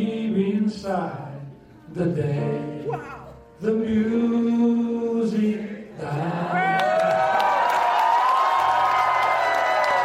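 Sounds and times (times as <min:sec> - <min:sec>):
speech: 0:00.4 - 0:06.8
White House audience cheering after the South Korean president sings: 0:06.3 - 0:10.0
high-pitched whoops and shouts: 0:06.6 - 0:10.0.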